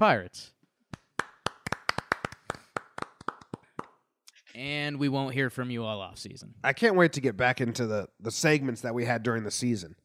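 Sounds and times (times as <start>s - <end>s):
speech: 0.0s - 0.6s, 4.6s - 10.0s
hand clapping: 0.9s - 4.1s.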